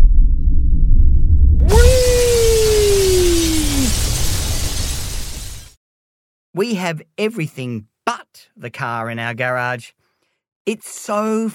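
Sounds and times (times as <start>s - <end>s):
single whistling tone sliding downward: 0.0s - 5.4s
explosion with shattering: 0.0s - 5.8s
speech: 6.6s - 10.0s, 10.6s - 11.5s.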